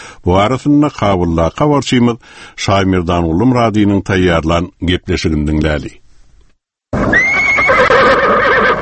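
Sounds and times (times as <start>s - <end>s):
speech: 0.2s - 6.0s
horse whinnying at Hamid Karzai's stables in Kabul: 7.0s - 8.8s.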